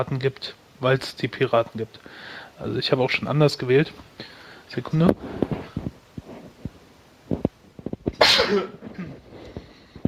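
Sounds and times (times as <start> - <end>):
speech: 0.0 - 5.4
rustling: 4.9 - 10.0
sneeze: 8.2 - 9.2.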